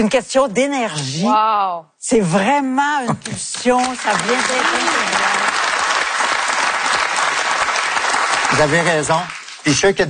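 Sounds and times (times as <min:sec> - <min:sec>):
speech: 0:00.0 - 0:05.4, 0:08.5 - 0:10.0
audience clapping: 0:03.2 - 0:10.0.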